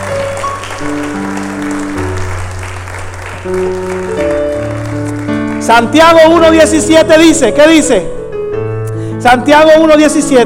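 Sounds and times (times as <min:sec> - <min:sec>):
audience applause: 0:00.0 - 0:06.0
speech: 0:03.4 - 0:04.0, 0:05.7 - 0:08.2, 0:09.2 - 0:10.4.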